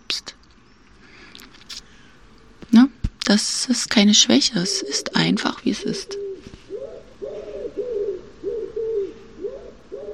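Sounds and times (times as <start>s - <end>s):
speech: 0.1s - 0.4s, 2.7s - 6.2s
pigeon cooing: 4.5s - 10.1s.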